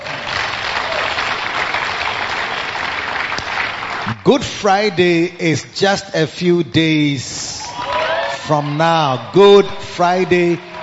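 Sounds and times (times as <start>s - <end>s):
audience clapping: 0.0s - 5.0s
speech: 4.2s - 7.4s, 8.5s - 10.7s.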